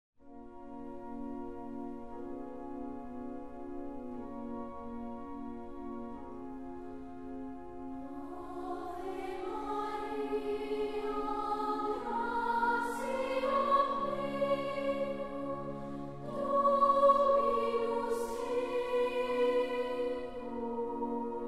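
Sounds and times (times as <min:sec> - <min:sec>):
chorus singing: 0:08.2 - 0:21.4.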